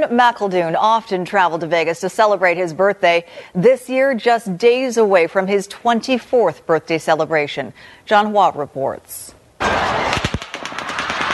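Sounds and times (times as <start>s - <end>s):
speech: 0.0s - 10.2s
automatic gunfire: 9.6s - 11.3s.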